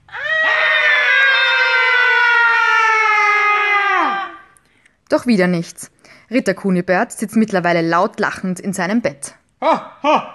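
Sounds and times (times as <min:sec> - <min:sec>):
ghosts screaming and howling: 0:00.1 - 0:04.5
speech: 0:05.2 - 0:10.3.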